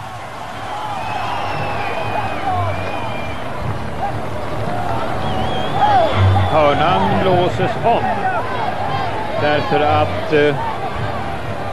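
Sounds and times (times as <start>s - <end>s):
stadium crowd cheering: 0.0s - 11.7s
speech: 7.5s - 8.2s, 9.4s - 10.7s.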